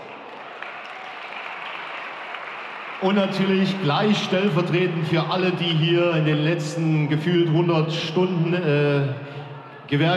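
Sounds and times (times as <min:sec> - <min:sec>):
audience applause at an Oktoberfest event in a decorated arena: 0:00.0 - 0:04.7
speech: 0:03.0 - 0:09.2, 0:09.9 - 0:10.1.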